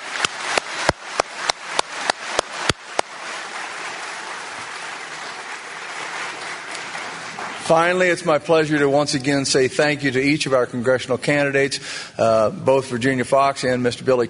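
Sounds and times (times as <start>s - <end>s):
audience applause: 0.0s - 8.8s
speech: 7.7s - 14.2s.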